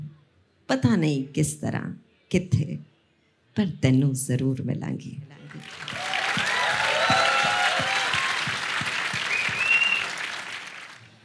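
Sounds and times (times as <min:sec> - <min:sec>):
speech: 0:00.7 - 0:02.9, 0:03.6 - 0:06.0
audience applause: 0:05.5 - 0:11.2.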